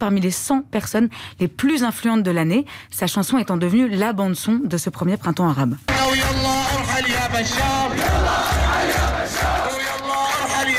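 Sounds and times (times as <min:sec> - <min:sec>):
speech: 0:00.0 - 0:06.4, 0:07.4 - 0:08.2
crowd chanting a protest refrain: 0:05.9 - 0:10.7.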